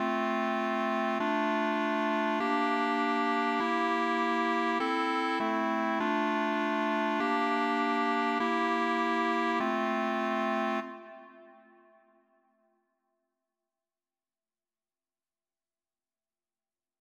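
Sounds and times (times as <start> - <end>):
clarinet version: 0.0 - 12.1.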